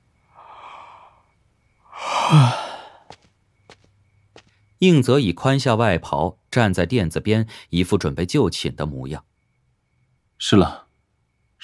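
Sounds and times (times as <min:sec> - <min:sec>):
person yawning: 0:02.0 - 0:03.0
speech: 0:02.3 - 0:02.6, 0:04.8 - 0:09.3, 0:10.4 - 0:10.8.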